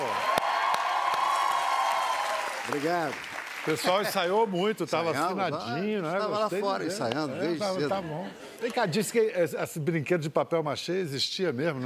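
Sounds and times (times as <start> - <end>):
audience applause and cheering: 0.0 - 4.8
speech: 2.7 - 11.8.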